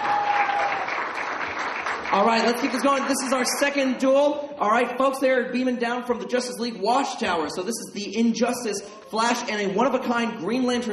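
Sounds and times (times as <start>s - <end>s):
audience applause: 0.0s - 3.7s
speech: 2.1s - 10.9s.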